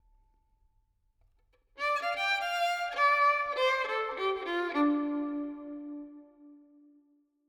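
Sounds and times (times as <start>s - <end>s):
violin with reverb in D minor: 1.8s - 6.8s.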